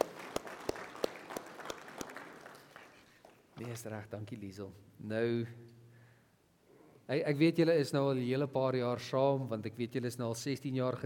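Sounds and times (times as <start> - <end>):
audience applause: 0.0 - 3.4
speech: 3.6 - 5.7, 7.1 - 11.0.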